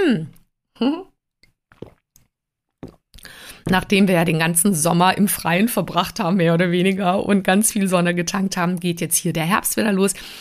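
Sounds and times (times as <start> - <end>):
speech: 0.1 - 1.1, 3.7 - 10.4
person sipping a drink: 1.4 - 3.6.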